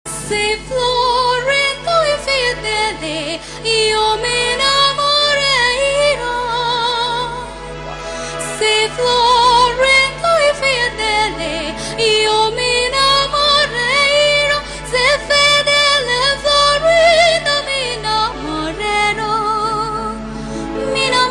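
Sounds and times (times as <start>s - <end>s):
opera singer singing: 0.1s - 21.2s.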